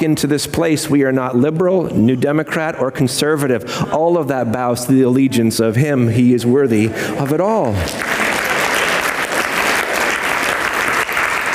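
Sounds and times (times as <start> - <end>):
speech: 0.0 - 8.2
audience applause: 7.8 - 11.5.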